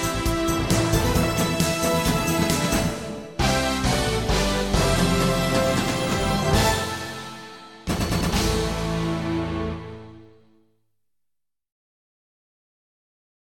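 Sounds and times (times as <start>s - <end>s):
victory soundtrack music: 0.0s - 10.6s.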